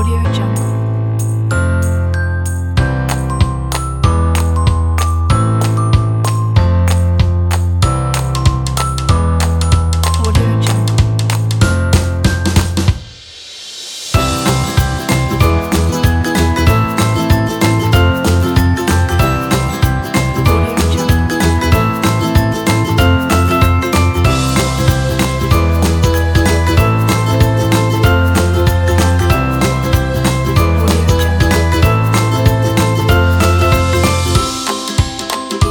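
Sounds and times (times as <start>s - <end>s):
happy funny kids music: 0.0s - 13.0s, 14.2s - 35.6s.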